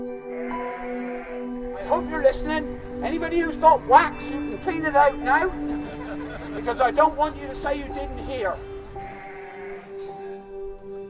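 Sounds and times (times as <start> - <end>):
lambs bleating on a farm: 0.3 - 1.4, 9.0 - 10.0
speech: 1.9 - 8.7
laughter: 5.0 - 7.4.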